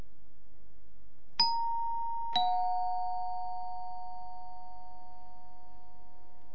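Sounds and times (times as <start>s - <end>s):
two-tone chime: 1.4s - 6.5s.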